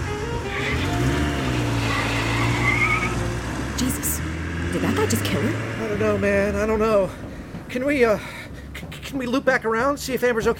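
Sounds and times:
tires skidding: 0.0s - 3.8s
car speeding away with roaring engine: 0.0s - 9.1s
speech: 5.1s - 8.3s, 9.1s - 10.5s.

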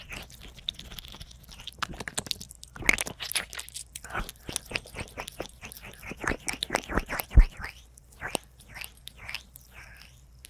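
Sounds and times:
ear eating and licking wet smacks and slurps: 0.0s - 10.4s
faint breathy noises: 9.6s - 10.4s.

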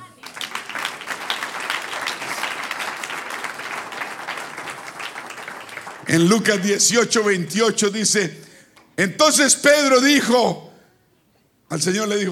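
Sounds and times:
crowd applause: 0.0s - 6.9s
speech: 6.1s - 10.7s, 11.7s - 12.3s.

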